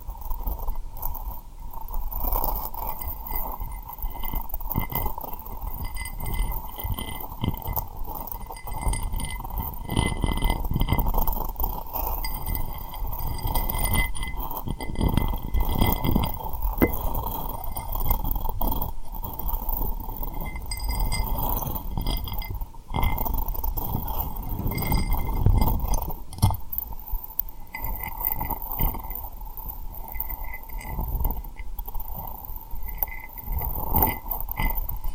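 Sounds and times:
tapping and rubbing on rhinestones: 0.0 - 35.1
small bright clicks and glassy clinks: 2.7 - 29.2, 30.0 - 34.8.

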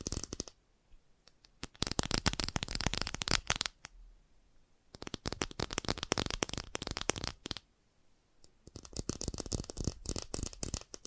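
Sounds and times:
fast tapping: 1.6 - 3.7, 5.0 - 7.6, 8.6 - 11.0.

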